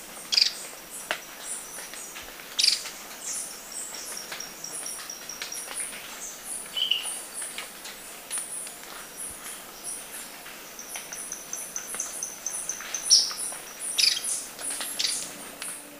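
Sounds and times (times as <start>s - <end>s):
Ornate flycatcher calling in Ecuador: 0.2s - 15.9s.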